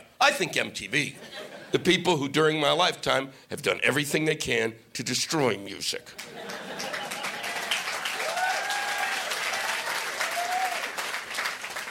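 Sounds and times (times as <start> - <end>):
speech: 0.2 - 6.7
laughter: 0.3 - 1.8, 6.2 - 8.0
audience applause: 6.2 - 11.9.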